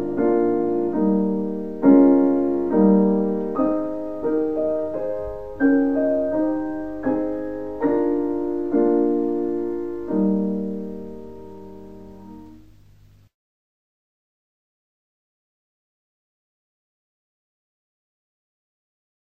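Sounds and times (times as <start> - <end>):
piano piece: 0.0 - 13.3.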